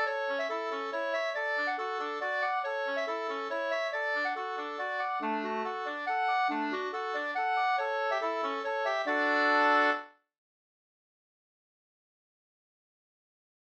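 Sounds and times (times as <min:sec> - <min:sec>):
waltz music: 0:00.0 - 0:10.1.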